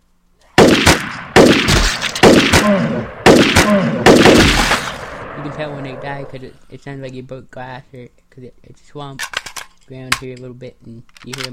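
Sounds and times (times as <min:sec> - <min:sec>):
video game assault rifle gunfire: 0:00.6 - 0:06.3
speech: 0:05.6 - 0:11.5.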